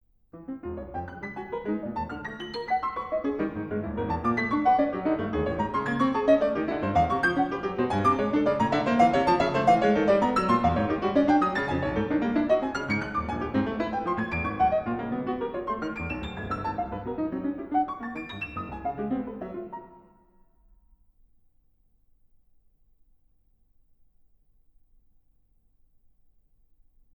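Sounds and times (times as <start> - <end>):
fast piano piece: 0.4 - 20.2.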